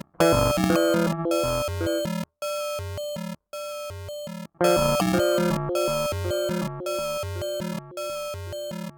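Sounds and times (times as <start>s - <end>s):
sequenced samples: 0.2s - 2.1s, 4.6s - 8.9s.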